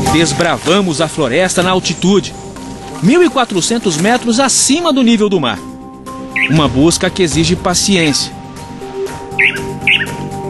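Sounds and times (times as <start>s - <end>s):
speech: 0.1s - 5.7s, 6.4s - 8.4s, 9.4s - 10.2s
small forest bird singing: 6.2s - 6.7s, 9.3s - 10.3s.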